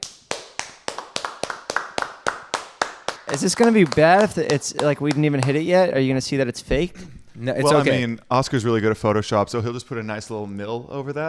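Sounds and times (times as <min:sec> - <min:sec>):
hand clapping applause: 0:00.0 - 0:05.8
speech: 0:03.3 - 0:11.2.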